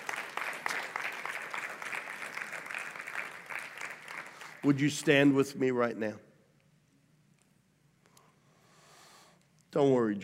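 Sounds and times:
audience clapping: 0.0 - 4.8
speech: 4.6 - 6.3, 9.8 - 10.2.

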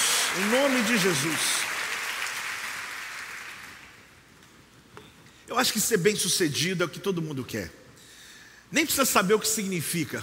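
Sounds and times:
audience applause: 0.0 - 4.0
speech: 0.4 - 1.7, 5.5 - 7.8, 8.7 - 10.2.

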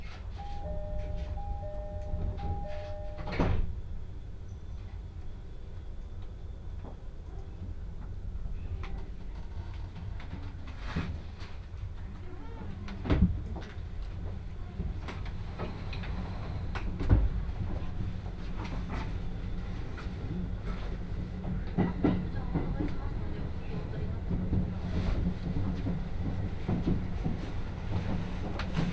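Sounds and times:
train carriage running on the Utsunomiya Line: 0.0 - 28.9
two-tone chime: 0.4 - 3.6.

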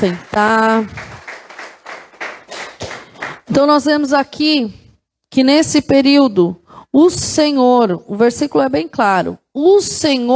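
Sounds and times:
speech: 0.0 - 1.1, 3.5 - 10.3
audience clapping: 0.0 - 3.6.

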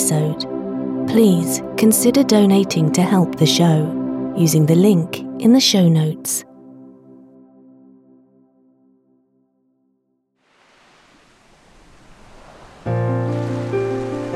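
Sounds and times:
soothing music: 0.0 - 10.0, 12.4 - 14.3
speech: 0.1 - 6.5
sea waves breaking on shore: 10.4 - 14.3.

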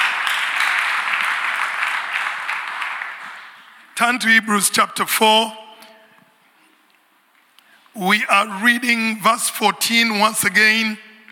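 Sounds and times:
audience applause: 0.0 - 3.7
speech: 4.0 - 5.6, 8.0 - 11.0.

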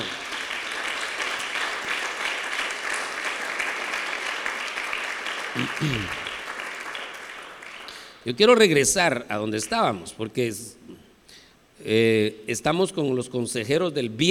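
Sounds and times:
audience applauding: 0.0 - 8.2
speech: 5.6 - 6.2, 8.2 - 10.8, 11.8 - 14.2.

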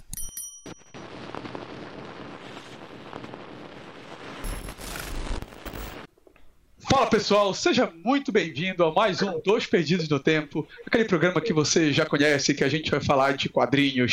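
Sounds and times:
bell-like tones: 0.0 - 1.0
crackling rush of noise: 0.8 - 6.1
speech: 7.0 - 14.1.

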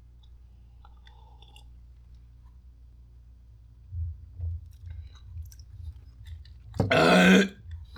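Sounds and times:
throaty burst after drinking grape juice: 6.8 - 7.6
gulping grape juice: 6.8 - 7.9.

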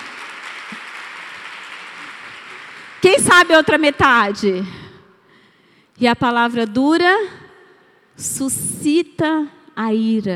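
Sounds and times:
audience applause: 0.0 - 3.2
speech: 3.1 - 4.8, 6.0 - 7.4, 8.2 - 10.3.

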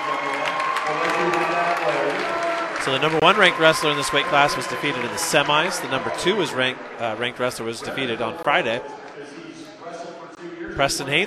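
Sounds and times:
wrestling arena crowd cheering: 0.0 - 11.2
speech: 1.8 - 9.4, 10.8 - 11.2.

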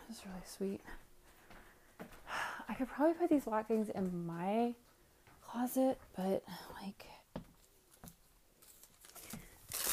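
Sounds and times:
speech: 0.1 - 1.0, 2.0 - 4.9, 5.5 - 7.2
plastic trash bags rustling and crinkling as they are handled: 8.6 - 9.9.

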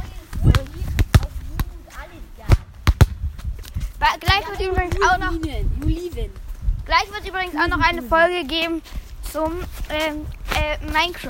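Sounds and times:
football being kicked and bounced: 0.0 - 6.4
speech: 4.2 - 11.2.

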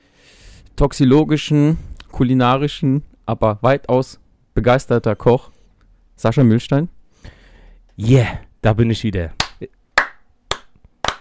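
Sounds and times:
speech: 0.8 - 5.5, 6.2 - 7.4, 8.0 - 9.8
slow hand claps: 9.4 - 11.1.

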